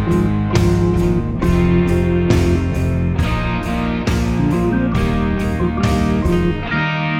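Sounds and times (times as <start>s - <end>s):
brass chromatic scale: 0.1s - 3.1s, 4.4s - 7.0s.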